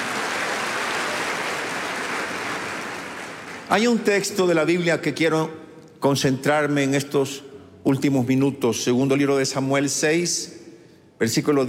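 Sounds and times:
audience applause: 0:00.0 - 0:03.8
speech: 0:03.7 - 0:10.6, 0:11.2 - 0:11.6.

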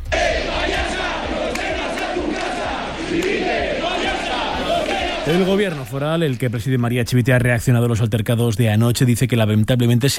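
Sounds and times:
crowd shouting protest chants: 0:00.0 - 0:05.9
speech: 0:05.3 - 0:10.1.

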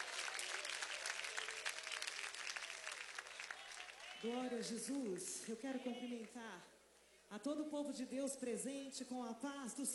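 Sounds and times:
audience applause: 0:00.0 - 0:04.5
speech: 0:04.2 - 0:09.9.

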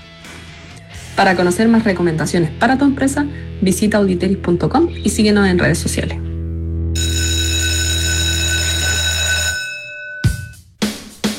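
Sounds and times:
speech: 0:01.2 - 0:06.2
school bell ringing: 0:07.0 - 0:10.6
sharp ringing strikes: 0:09.6 - 0:10.6.

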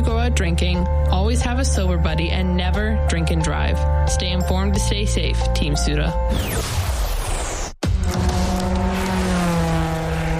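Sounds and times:
speech: 0:00.4 - 0:07.0
race cars speeding around a track on the final lap: 0:08.0 - 0:10.3.

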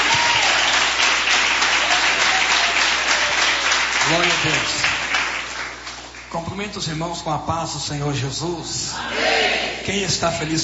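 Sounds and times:
audience applause: 0:00.0 - 0:06.2
speech: 0:04.1 - 0:04.9, 0:06.3 - 0:10.6.

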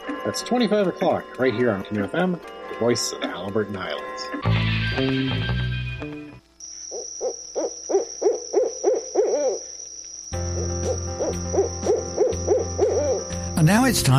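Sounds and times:
speech: 0:00.2 - 0:05.6, 0:13.6 - 0:14.1
barred owl hooting: 0:06.7 - 0:13.6.

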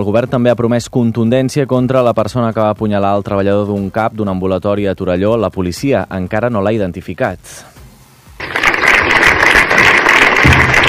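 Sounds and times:
speech: 0:00.0 - 0:07.7
dozens of neighbours applauding: 0:08.4 - 0:10.8.

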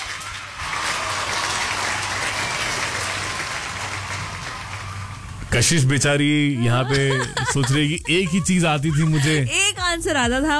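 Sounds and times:
applause sound effect: 0:00.0 - 0:06.0
laughter: 0:05.6 - 0:09.7
speech: 0:05.6 - 0:10.5.

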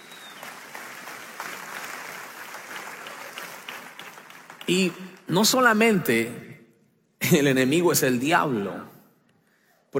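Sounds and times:
crowd applauding: 0:00.0 - 0:05.8
speech: 0:04.7 - 0:06.5, 0:07.3 - 0:08.9.

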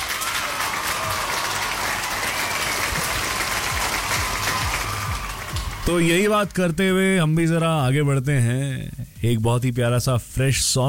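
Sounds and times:
applause: 0:00.0 - 0:06.6
speech: 0:05.8 - 0:10.8.

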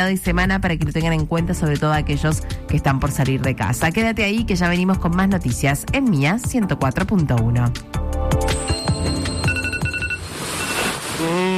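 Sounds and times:
speech: 0:00.0 - 0:08.0
alarm clock ringing: 0:08.5 - 0:10.9.

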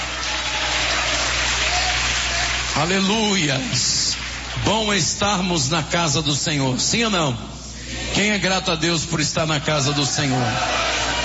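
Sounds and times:
audience applauding: 0:00.0 - 0:05.1, 0:10.1 - 0:11.2
speech: 0:02.8 - 0:04.0, 0:04.6 - 0:11.0
laughter: 0:09.7 - 0:11.2.

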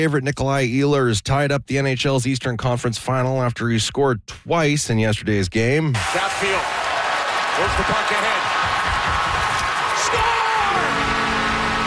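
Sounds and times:
speech: 0:00.0 - 0:06.9, 0:07.6 - 0:08.8
hockey arena crowd cheering an overtime winning goal in an NHL playoff game: 0:06.0 - 0:11.8.

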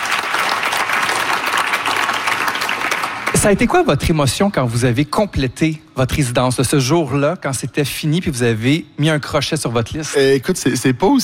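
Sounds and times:
audience applause: 0:00.0 - 0:03.8
speech: 0:03.4 - 0:11.2.

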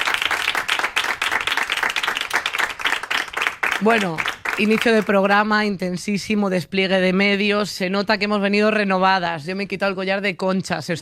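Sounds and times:
audience applause: 0:00.0 - 0:05.0
speech: 0:03.8 - 0:11.0.

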